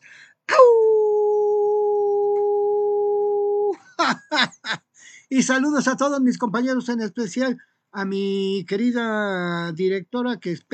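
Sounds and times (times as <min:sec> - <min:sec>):
person imitating a wolf's howl: 0:00.5 - 0:03.8
speech: 0:05.3 - 0:10.7.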